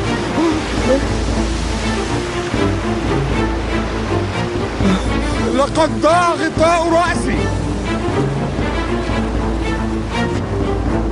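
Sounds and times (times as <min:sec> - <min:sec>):
high ocean waves in a storm: 0:00.0 - 0:11.0
speech: 0:05.6 - 0:07.6.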